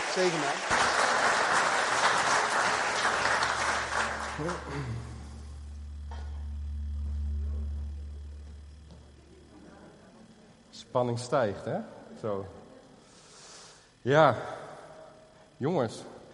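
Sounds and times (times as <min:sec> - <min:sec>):
audience clapping: 0:00.0 - 0:05.6
low sustained hum: 0:00.0 - 0:16.3
speech: 0:00.2 - 0:00.8, 0:04.4 - 0:05.1, 0:10.9 - 0:12.6, 0:14.0 - 0:14.6, 0:15.6 - 0:16.1.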